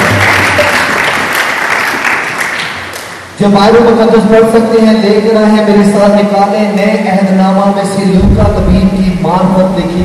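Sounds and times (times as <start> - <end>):
loud applause: 0.0 - 3.2
speech: 3.4 - 10.0.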